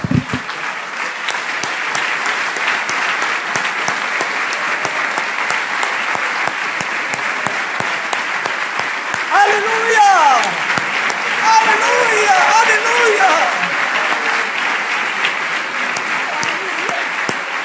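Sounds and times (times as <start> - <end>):
audience applauding: 0.0 - 17.6.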